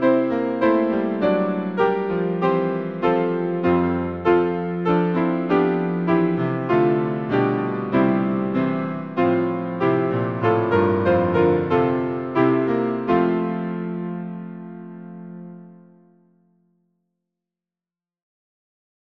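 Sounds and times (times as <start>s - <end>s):
hymn played on piano: 0.0s - 16.6s.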